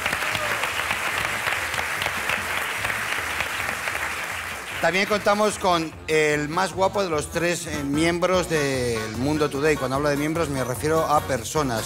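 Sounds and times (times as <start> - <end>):
audience clapping: 0.0 - 6.0
speech: 4.8 - 11.8.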